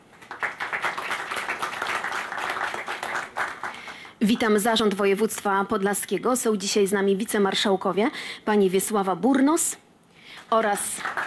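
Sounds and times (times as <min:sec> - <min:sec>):
audience applause: 0:00.0 - 0:04.1, 0:11.0 - 0:11.2
speech: 0:04.2 - 0:09.8, 0:10.4 - 0:11.2.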